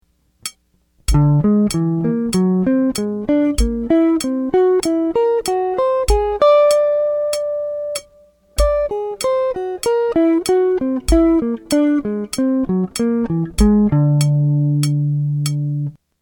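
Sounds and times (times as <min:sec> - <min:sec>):
guitar playing harmonic minor scale: 0:01.1 - 0:16.0.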